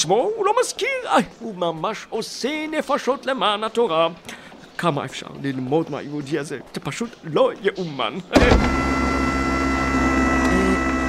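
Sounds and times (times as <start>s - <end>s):
speech: 0.0s - 9.1s
electric door opening: 8.4s - 11.0s.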